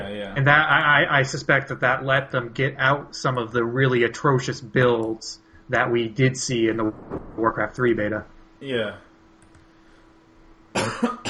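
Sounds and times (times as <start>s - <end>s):
speech: 0.3s - 9.0s, 10.8s - 11.2s
person coughing after inhaling green tea: 10.8s - 11.2s.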